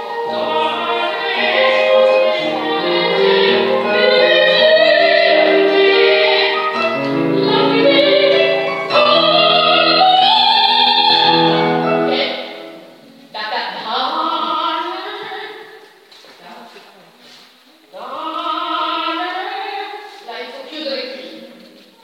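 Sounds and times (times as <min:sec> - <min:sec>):
sopranos singing: 0:00.0 - 0:15.8, 0:17.9 - 0:21.6.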